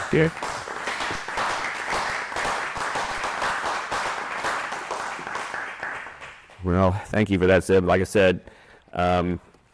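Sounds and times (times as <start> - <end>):
audience applause honoring a filmmaker after a Ukraine film: 0.0 - 6.5
speech: 0.1 - 0.6, 6.6 - 9.5.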